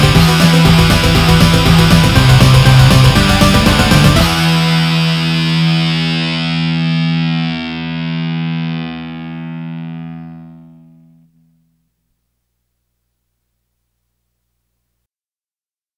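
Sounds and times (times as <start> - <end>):
guitars: 0.0 - 12.0.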